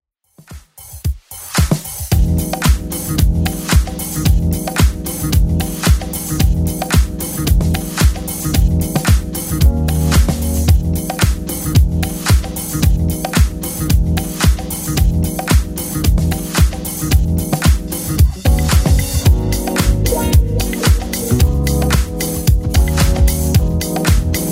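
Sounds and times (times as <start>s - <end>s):
1980s club edit at 112 BPM: 1.4s - 24.5s.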